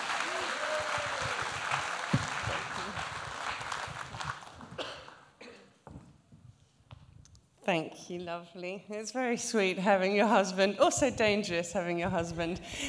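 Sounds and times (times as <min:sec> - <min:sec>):
audience applause welcoming a speaker to the stage: 0:00.0 - 0:05.3
speech: 0:07.7 - 0:12.8.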